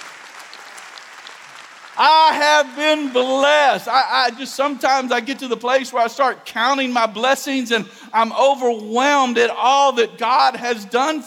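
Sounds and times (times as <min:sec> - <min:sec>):
audience clapping: 0:00.0 - 0:04.2
speech: 0:02.0 - 0:11.2.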